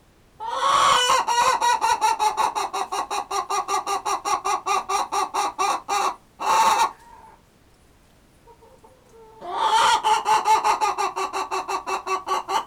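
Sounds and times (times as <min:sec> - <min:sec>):
chicken clucking: 0:00.4 - 0:07.4, 0:08.4 - 0:12.6.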